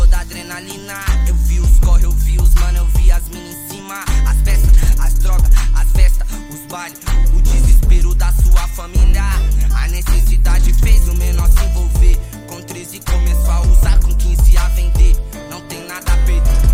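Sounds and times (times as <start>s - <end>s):
deep bass: 0.0s - 0.3s, 1.1s - 3.4s, 4.1s - 6.4s, 7.1s - 12.4s, 13.1s - 15.4s, 16.1s - 16.7s.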